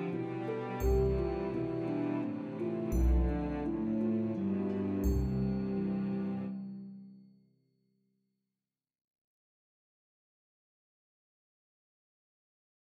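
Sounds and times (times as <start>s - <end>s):
cello melody: 0.0s - 6.6s.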